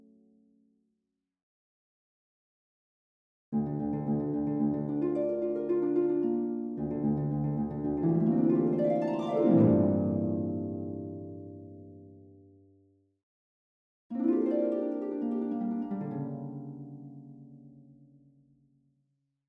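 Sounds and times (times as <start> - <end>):
harp: 3.6 - 12.2, 14.1 - 18.0.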